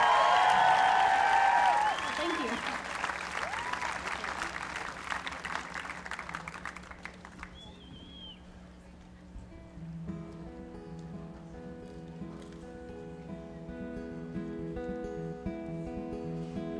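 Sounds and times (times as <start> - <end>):
audience applause after a performance: 0.0 - 8.1.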